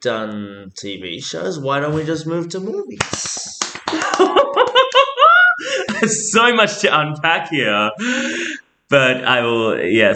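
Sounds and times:
speech: 0.0 - 10.1
hand claps: 3.0 - 5.2
laughter: 3.4 - 7.0, 7.6 - 8.6.

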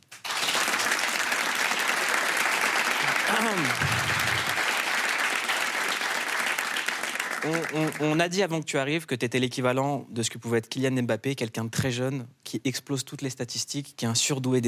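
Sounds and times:
sustained loud audience applause: 0.0 - 8.2
speech: 3.4 - 4.2, 7.4 - 14.6.

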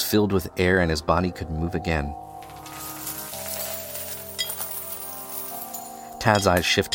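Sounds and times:
speech: 0.1 - 2.3, 6.2 - 6.9
gold coins clinking onto a pile on a carpet: 2.4 - 6.9.

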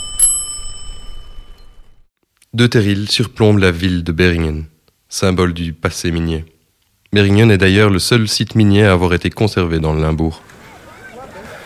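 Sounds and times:
bicycle bell ringing: 0.0 - 2.1
speech: 2.5 - 6.5, 7.1 - 10.5.

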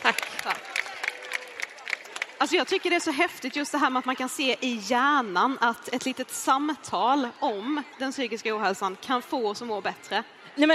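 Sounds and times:
audience applause: 0.0 - 3.6
speech: 2.4 - 10.7.

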